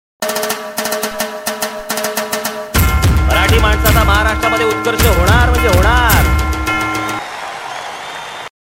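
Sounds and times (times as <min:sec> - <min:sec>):
dhol drumming: 0:00.2 - 0:07.2.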